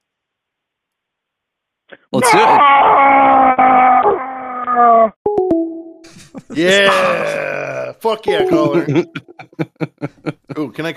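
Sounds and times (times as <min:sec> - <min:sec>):
speech: 0:01.9 - 0:03.8, 0:06.4 - 0:10.9
person screaming: 0:02.2 - 0:05.1, 0:06.6 - 0:08.0
laughter: 0:06.1 - 0:10.9.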